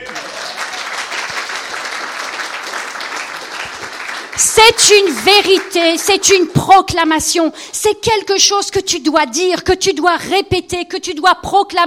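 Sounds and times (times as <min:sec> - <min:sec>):
audience applauding: 0:00.0 - 0:06.6
speech: 0:04.4 - 0:11.8.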